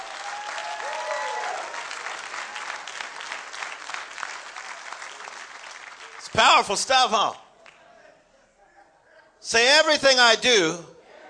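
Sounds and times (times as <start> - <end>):
crowd shouting and cheering: 0.0 - 3.0
crowd applause: 0.0 - 6.7
speech: 6.4 - 7.4, 9.4 - 10.9.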